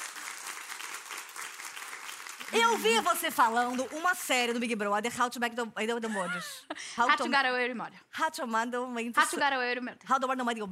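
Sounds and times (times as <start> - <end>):
audience applause: 0.0 - 3.9
speech: 2.5 - 10.7.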